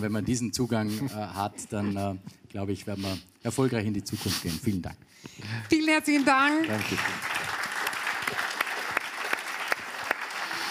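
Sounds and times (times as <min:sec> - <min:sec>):
speech: 0:00.0 - 0:07.3
audience applause: 0:06.1 - 0:10.6.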